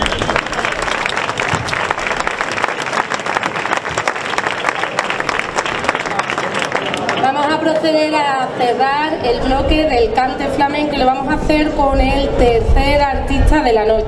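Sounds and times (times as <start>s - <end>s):
audience applause: 0.0s - 7.9s
speech: 7.9s - 14.0s.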